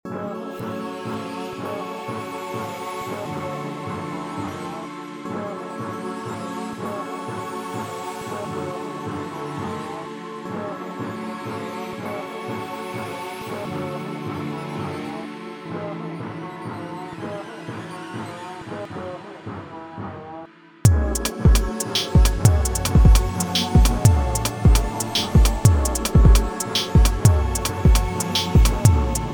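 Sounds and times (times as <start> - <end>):
techno music: 20.9 - 29.3.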